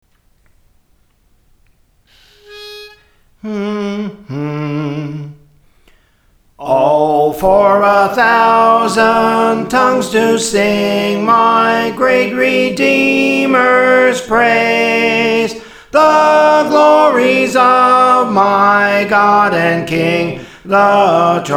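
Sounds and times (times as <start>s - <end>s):
soprano singing songs: 2.4s - 5.4s, 6.6s - 21.5s.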